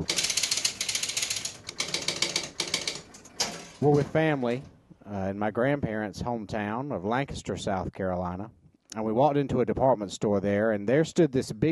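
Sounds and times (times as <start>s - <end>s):
electromechanical pinball machine startup ratcheting clicks: 0.0s - 3.1s
speech: 3.8s - 11.7s.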